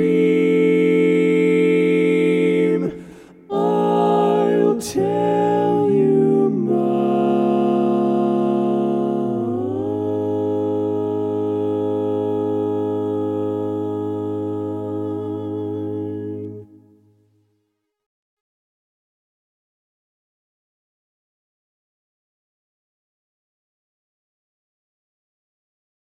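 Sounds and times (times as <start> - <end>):
tenor voice singing: 0.0 - 16.8.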